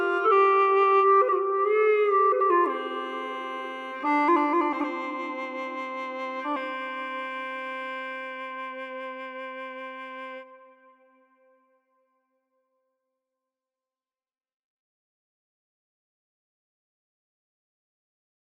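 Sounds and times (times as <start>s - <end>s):
bawu flute: 0.0s - 11.8s.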